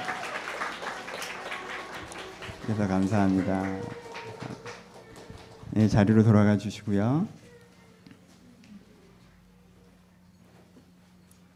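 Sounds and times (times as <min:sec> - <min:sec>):
church congregation applause at a Christmas service: 0:00.0 - 0:06.3
speech: 0:02.7 - 0:04.0, 0:05.8 - 0:07.4.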